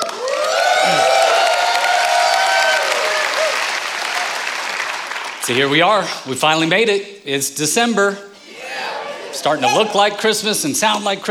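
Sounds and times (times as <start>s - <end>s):
crowd cheering and whooping: 0.0s - 4.8s, 8.4s - 10.0s
crowd applause in welcome: 0.0s - 5.5s
speech: 5.5s - 8.3s, 9.4s - 11.3s.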